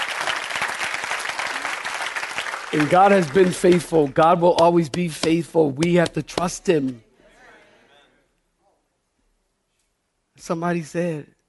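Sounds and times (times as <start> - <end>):
audience clapping: 0.0 - 6.9
speech: 2.7 - 7.0, 10.4 - 11.4.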